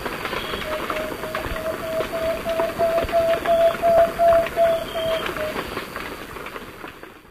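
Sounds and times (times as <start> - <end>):
Plain-backed antpitta calling in South America: 0.2 - 5.8.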